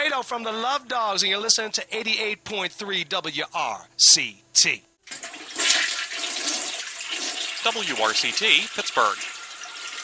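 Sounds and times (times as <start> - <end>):
speech: 0.2 - 5.2, 7.6 - 9.3
toilet flushing: 5.0 - 10.0.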